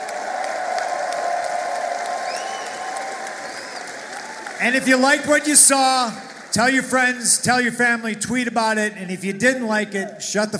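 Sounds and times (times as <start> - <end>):
crowd applause: 0.0 - 8.1
speech: 4.6 - 10.5.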